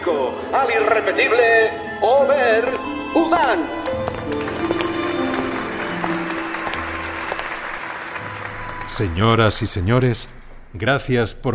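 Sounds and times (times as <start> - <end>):
speech: 0.1 - 4.4, 8.9 - 11.5
loud applause from an audience: 2.7 - 9.6.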